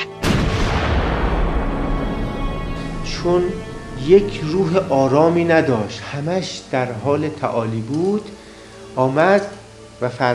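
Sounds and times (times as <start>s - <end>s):
heavy cannon blast: 0.0s - 5.0s
speech: 3.2s - 8.4s, 9.0s - 10.3s.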